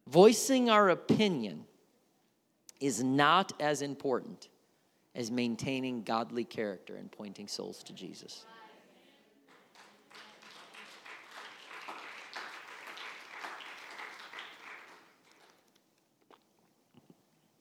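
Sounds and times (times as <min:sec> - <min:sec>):
speech: 0:00.1 - 0:01.7, 0:02.8 - 0:04.5, 0:05.2 - 0:08.6
crowd applauding: 0:09.5 - 0:15.7.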